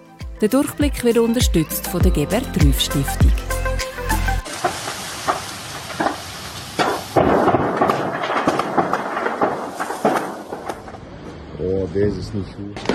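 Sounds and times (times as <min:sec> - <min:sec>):
speech: 0:00.4 - 0:03.5, 0:11.9 - 0:12.9
fire blazing on festival main stage in Belgium: 0:04.4 - 0:11.6.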